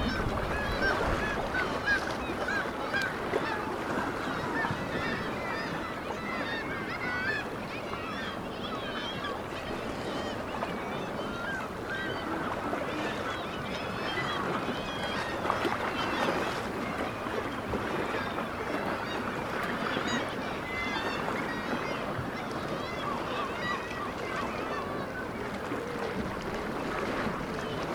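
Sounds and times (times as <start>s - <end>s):
black-legged kittiwakes crying chorus: 0.0s - 27.9s.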